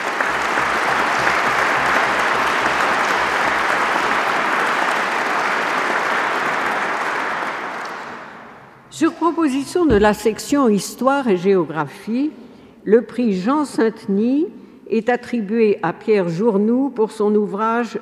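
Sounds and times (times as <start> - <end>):
audience applause: 0.0 - 8.6
speech: 9.0 - 17.9.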